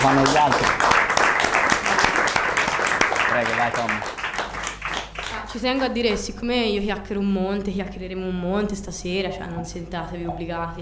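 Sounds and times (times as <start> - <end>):
hand claps: 0.0 - 5.9
speech: 0.1 - 0.9, 3.4 - 4.2, 5.5 - 10.8.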